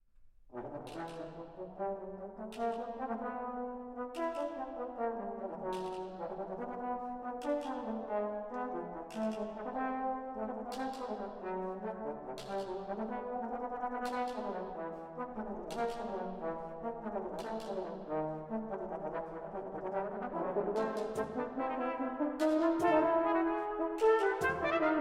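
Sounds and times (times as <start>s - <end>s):
brass instruments: 0.5s - 24.9s.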